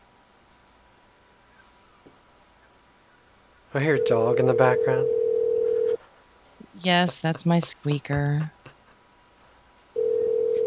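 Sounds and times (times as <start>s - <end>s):
speech: 3.7s - 5.2s, 6.8s - 8.6s
telephone line tone while placing a call: 3.8s - 6.0s, 10.0s - 10.6s.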